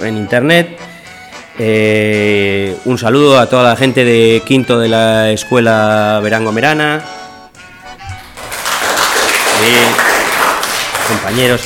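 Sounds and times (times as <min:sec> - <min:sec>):
speech: 0:00.0 - 0:00.9, 0:01.6 - 0:07.2, 0:09.6 - 0:10.0, 0:11.1 - 0:11.6
schoolchildren applauding: 0:08.2 - 0:11.6.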